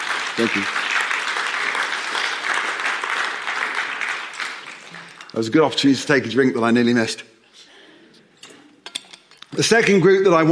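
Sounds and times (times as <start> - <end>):
audience clapping: 0.0 - 5.6
speech: 0.4 - 0.8, 5.4 - 7.3, 9.6 - 10.4.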